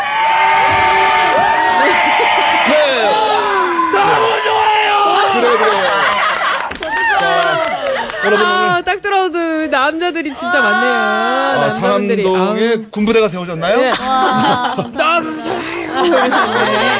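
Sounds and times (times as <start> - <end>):
large crowd cheering and whooping: 0.0 - 8.9, 10.3 - 11.8, 14.0 - 16.9
laughter: 1.6 - 4.3, 4.9 - 8.8, 13.7 - 16.9
speech: 9.9 - 16.9.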